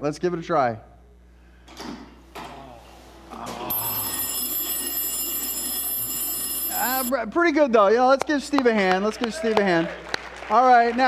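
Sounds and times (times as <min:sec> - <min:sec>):
speech: 0:00.0 - 0:00.9, 0:07.0 - 0:11.0
school bell: 0:03.7 - 0:07.1.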